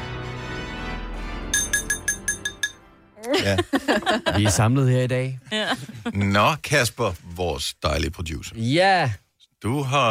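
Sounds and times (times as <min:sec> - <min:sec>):
tapping on a glass for a speech: 0:01.6 - 0:02.8
laughter: 0:03.2 - 0:04.8, 0:05.4 - 0:06.5
speech: 0:03.3 - 0:10.0.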